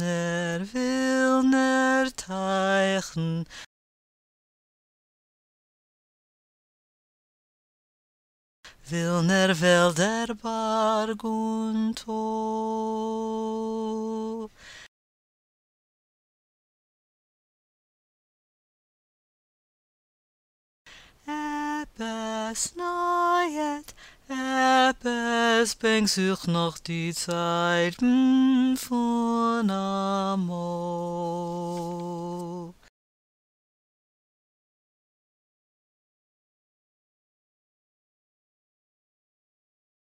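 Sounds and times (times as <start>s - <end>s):
tenor singing verses and refrain: 0.0s - 3.5s, 8.8s - 14.5s, 21.2s - 32.8s.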